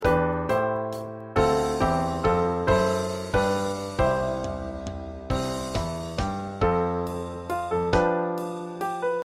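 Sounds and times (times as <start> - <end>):
piano: 0.0 - 9.2
drum: 1.4 - 8.2.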